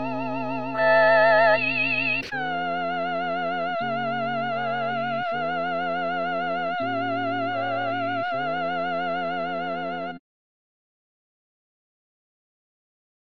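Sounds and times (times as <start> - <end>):
soprano singing: 0.0 - 10.2.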